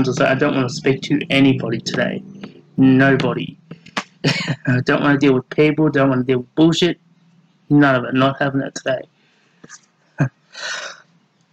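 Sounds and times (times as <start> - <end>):
speech: 0.0 - 3.6, 4.2 - 7.0, 7.7 - 11.0
person coughing: 4.2 - 4.7.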